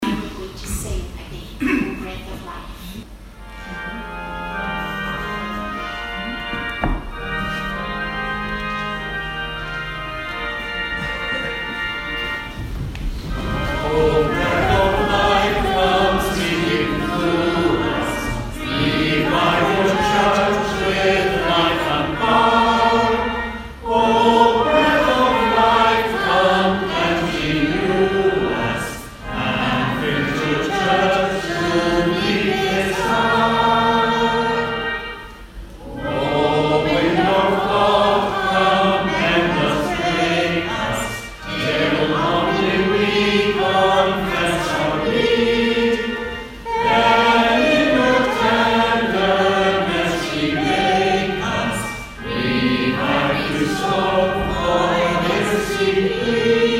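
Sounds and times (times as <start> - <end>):
hymn: 3.2 - 56.7.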